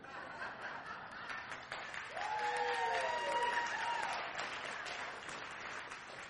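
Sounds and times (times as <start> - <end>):
audience clapping: 0.9 - 6.2
sustained voice-like cheer: 2.1 - 4.3.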